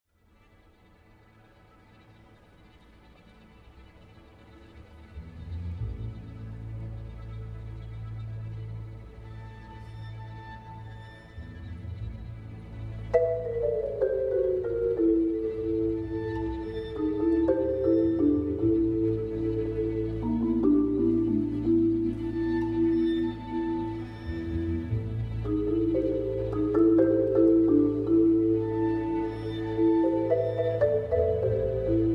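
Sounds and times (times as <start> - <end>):
marimba concerto: 13.1 - 32.1.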